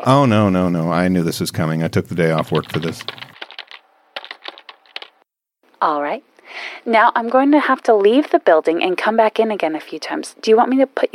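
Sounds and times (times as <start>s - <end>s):
speech: 0.0s - 3.3s, 5.8s - 11.1s
random number keys being pressed: 2.4s - 5.1s.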